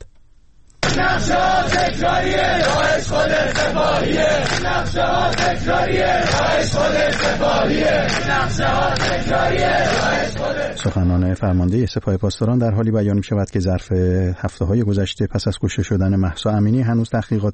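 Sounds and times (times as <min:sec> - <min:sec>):
large crowd of protesting students shouting and chanting: 0:00.8 - 0:10.9
speech: 0:01.0 - 0:17.5.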